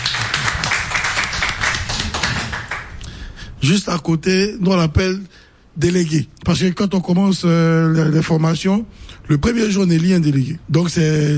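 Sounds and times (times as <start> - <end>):
audience clapping: 0.0 - 3.0
speech: 3.6 - 11.3.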